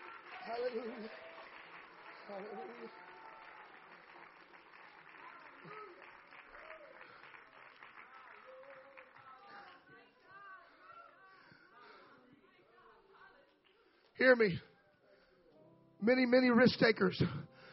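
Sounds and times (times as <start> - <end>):
large audience clapping hands: 0.0 - 10.2
speech: 0.5 - 1.3, 2.3 - 3.1, 14.2 - 14.7, 16.0 - 17.5.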